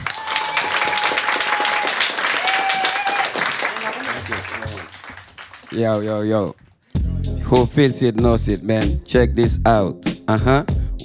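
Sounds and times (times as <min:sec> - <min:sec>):
warm audience applause: 0:00.0 - 0:06.2
speech: 0:05.8 - 0:06.6, 0:07.5 - 0:10.8.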